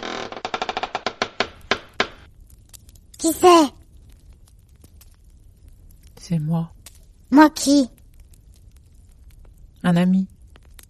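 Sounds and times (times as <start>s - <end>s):
door creaking open: 0.0s - 2.3s
speech: 3.2s - 3.8s, 6.3s - 8.0s, 9.9s - 10.3s.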